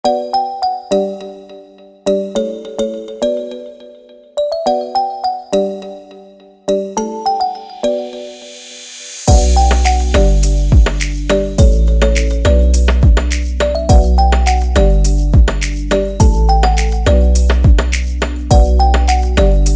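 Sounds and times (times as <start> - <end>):
instrumental music: 0.1 - 19.7.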